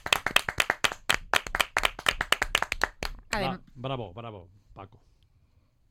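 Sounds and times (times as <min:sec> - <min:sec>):
small group hand clapping: 0:00.0 - 0:03.5
speech: 0:03.4 - 0:05.2.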